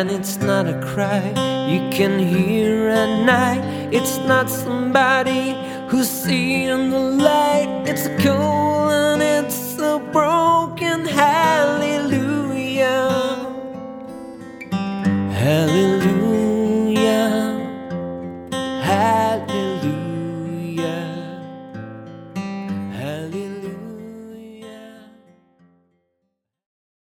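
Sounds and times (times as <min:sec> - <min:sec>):
person singing songs with guitar: 0:00.0 - 0:13.8, 0:15.3 - 0:17.8, 0:18.8 - 0:21.5
guitar: 0:00.0 - 0:26.2.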